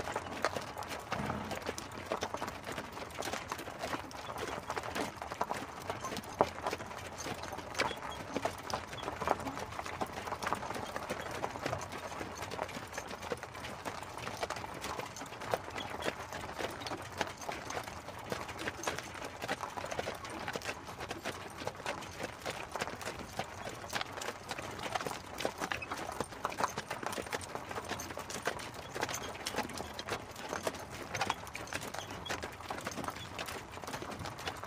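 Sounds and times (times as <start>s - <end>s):
horse and carriage: 0.0s - 34.6s.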